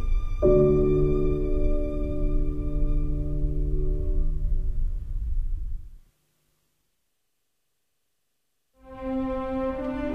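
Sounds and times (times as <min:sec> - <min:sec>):
violin playing in D: 0:00.0 - 0:04.4, 0:08.8 - 0:10.1
piano playing in D: 0:00.0 - 0:06.0, 0:08.8 - 0:10.1.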